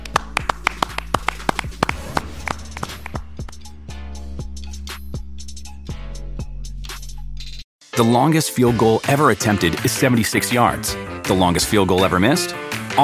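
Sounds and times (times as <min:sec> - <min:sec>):
scattered hand claps from a few people: 0:00.0 - 0:03.7
speech: 0:08.0 - 0:13.0.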